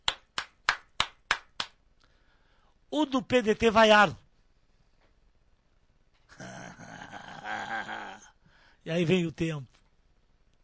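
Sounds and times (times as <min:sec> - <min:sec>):
hands clapping: 0:00.0 - 0:01.8
speech: 0:02.9 - 0:04.2, 0:08.8 - 0:09.8.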